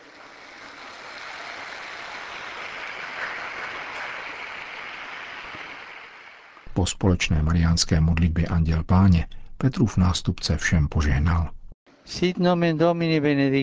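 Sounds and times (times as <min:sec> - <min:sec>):
crowd applause: 0:00.0 - 0:06.7
speech: 0:06.8 - 0:13.6.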